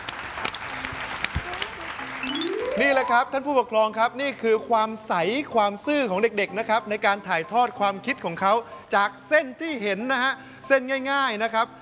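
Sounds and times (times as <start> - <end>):
group clapping for themselves at a children's drawing session: 0.0 - 3.2
speech: 2.8 - 11.7.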